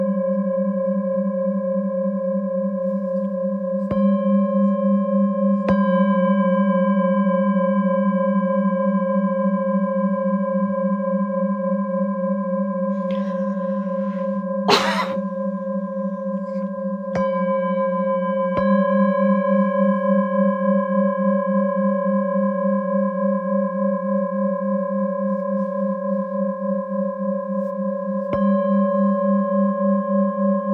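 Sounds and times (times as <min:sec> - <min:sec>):
Tibetan singing bowls ringing: 0:00.1 - 0:30.7
cough-like noise: 0:14.7 - 0:15.5.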